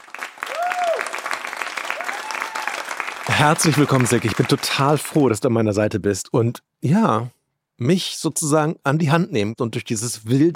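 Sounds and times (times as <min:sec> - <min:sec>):
audience applause welcoming two guests: 0:00.0 - 0:05.3
speech: 0:03.4 - 0:10.5.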